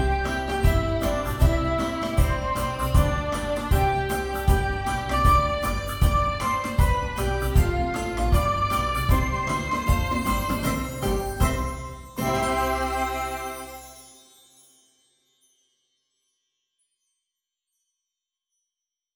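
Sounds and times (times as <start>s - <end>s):
country style music: 0.0s - 14.0s.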